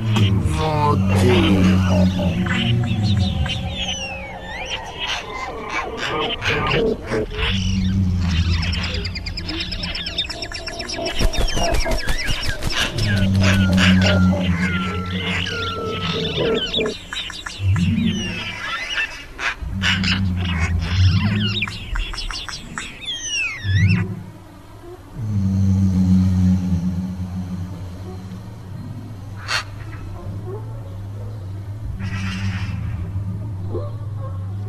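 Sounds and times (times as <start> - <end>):
fearsome wild animal roaring: 0.0 - 10.2, 13.0 - 17.0, 19.4 - 21.6, 25.1 - 34.6
birds chirping: 0.0 - 34.6
speech: 0.6 - 3.8, 6.2 - 8.0, 12.9 - 17.0
wings fluttering: 9.3 - 17.9.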